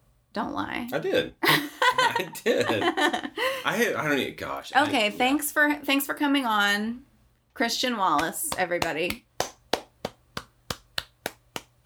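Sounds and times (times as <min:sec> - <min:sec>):
speech: 0:00.4 - 0:09.3
laughter: 0:01.4 - 0:03.6
single pair of hands clapping as a round of applause: 0:08.0 - 0:11.8.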